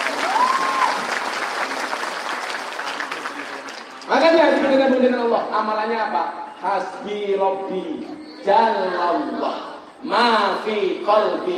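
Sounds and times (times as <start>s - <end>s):
audience applause after a motivational talk: 0.0s - 4.8s
speech: 4.2s - 11.5s.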